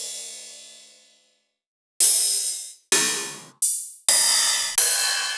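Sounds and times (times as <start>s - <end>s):
ride cymbal: 2.0s - 5.3s.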